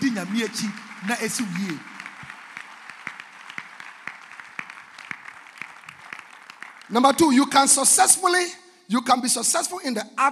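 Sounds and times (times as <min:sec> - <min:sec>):
audience clapping: 0:00.0 - 0:08.2
speech: 0:00.2 - 0:01.9, 0:06.9 - 0:10.2.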